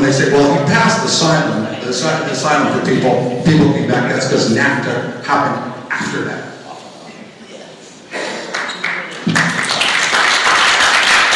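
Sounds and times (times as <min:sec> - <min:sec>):
speech: 0:00.1 - 0:06.5
audience applause: 0:08.5 - 0:11.3.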